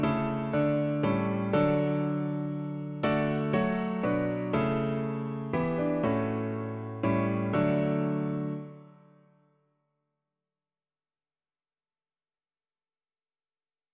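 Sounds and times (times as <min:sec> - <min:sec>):
piano version of a song: 0:00.0 - 0:09.4.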